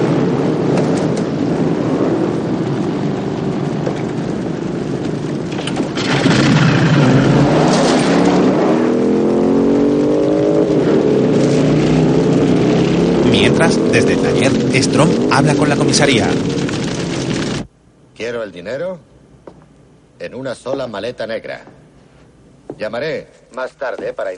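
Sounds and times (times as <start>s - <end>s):
motorcycle engine starting and riding off: 0.0s - 17.7s
speech: 13.7s - 16.8s, 18.3s - 19.1s, 20.2s - 21.7s, 22.8s - 24.3s.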